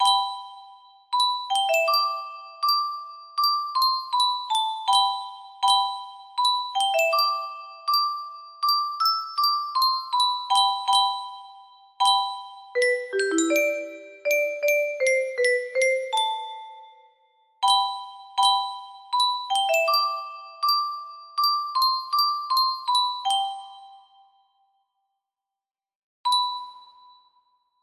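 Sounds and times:
calm music box melody: 0.0 - 24.6, 26.3 - 27.4.

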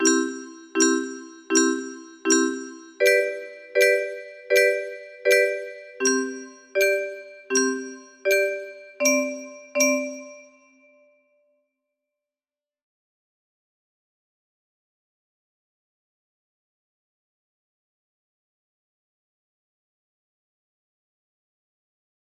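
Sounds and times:
music box melody: 0.0 - 11.0.

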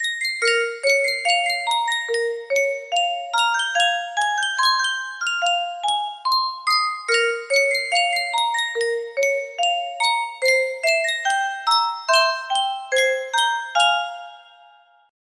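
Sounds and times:
Yunsheng custom tune music box: 0.0 - 15.1.

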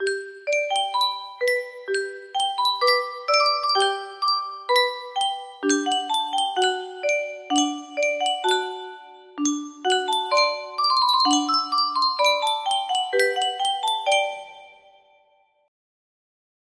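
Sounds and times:
music box melody: 0.0 - 15.1.

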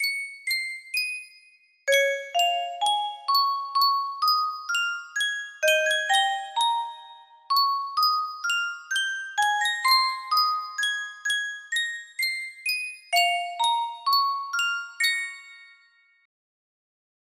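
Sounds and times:
Yunsheng custom tune music box: 0.0 - 16.3.

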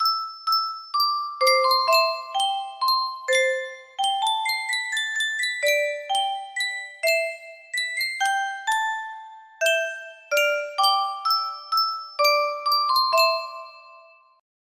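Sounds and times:
music box melody: 0.0 - 14.4.

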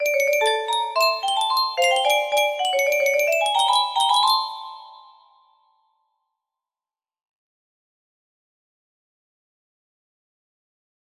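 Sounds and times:
melody: 0.0 - 5.5.

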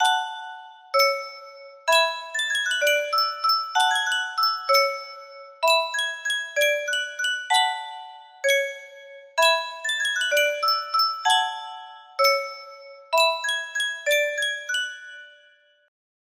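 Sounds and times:
music box melody: 0.0 - 15.9.

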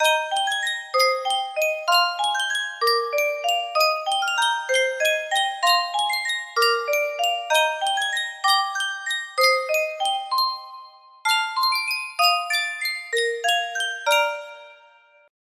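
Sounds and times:
Sankyo music box melody: 0.0 - 15.3.

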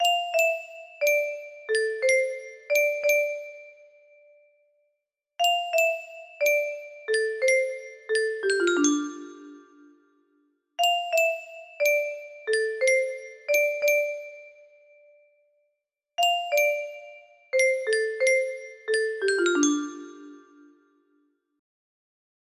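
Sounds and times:
music box melody: 0.0 - 4.0, 5.4 - 10.0, 10.8 - 14.8, 16.2 - 20.9.

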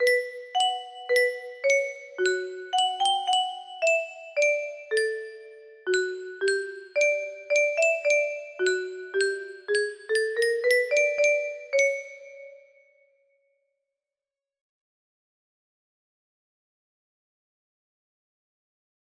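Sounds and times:
music box melody: 0.0 - 12.8.

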